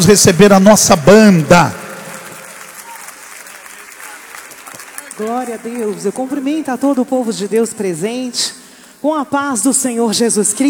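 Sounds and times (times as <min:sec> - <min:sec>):
speech: 0:00.0 - 0:01.8, 0:05.3 - 0:10.6
loud applause: 0:00.0 - 0:08.0.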